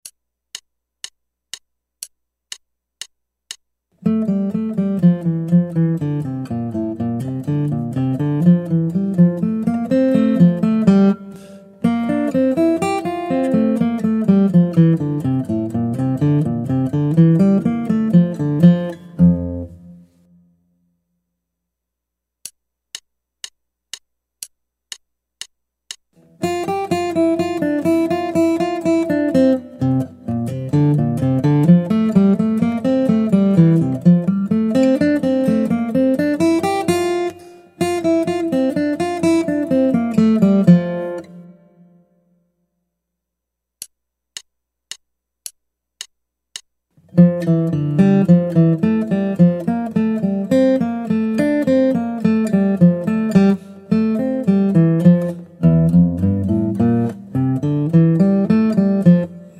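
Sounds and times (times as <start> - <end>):
guitar: 4.0 - 20.6, 26.2 - 42.3, 47.0 - 59.5.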